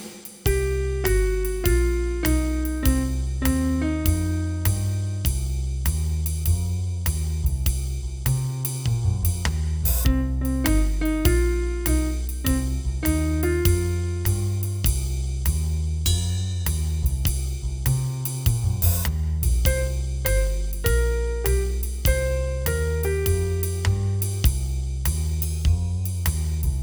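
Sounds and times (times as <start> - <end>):
blues piano: 0.5 - 7.6, 8.3 - 16.8, 17.9 - 26.7.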